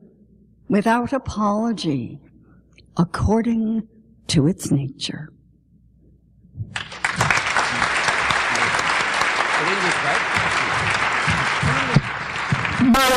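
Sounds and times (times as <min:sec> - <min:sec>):
speech: 0:00.7 - 0:02.3, 0:03.0 - 0:05.4, 0:09.7 - 0:10.6, 0:12.8 - 0:13.1
audience applause: 0:06.8 - 0:13.1.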